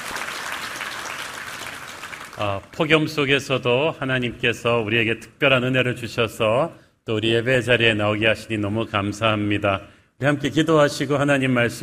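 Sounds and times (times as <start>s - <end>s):
church congregation applauding in thanks during a worship service: 0.0s - 2.8s
speech: 2.4s - 11.8s.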